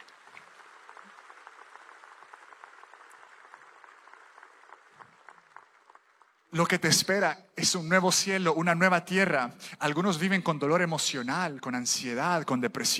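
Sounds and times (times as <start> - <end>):
audience applause: 0.0 - 6.9
speech: 6.5 - 12.9.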